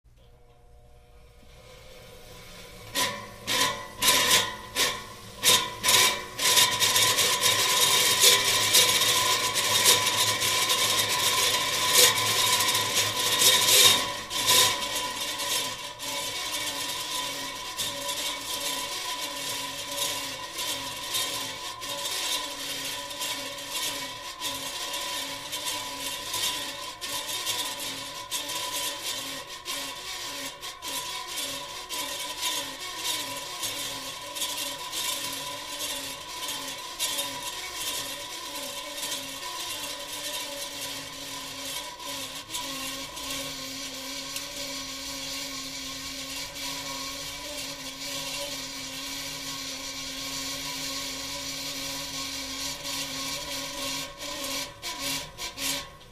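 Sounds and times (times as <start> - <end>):
small broken fan running with blade scraping at different speeds: 0.1 - 56.1.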